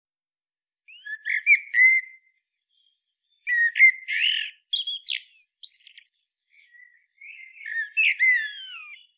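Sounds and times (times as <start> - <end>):
Common blackbird fluted song: 0.9 - 9.1.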